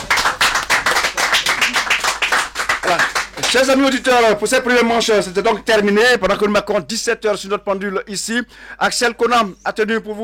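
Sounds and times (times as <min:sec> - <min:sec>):
rhythmic audience clapping in unison: 0:00.0 - 0:04.2
speech: 0:02.9 - 0:10.2.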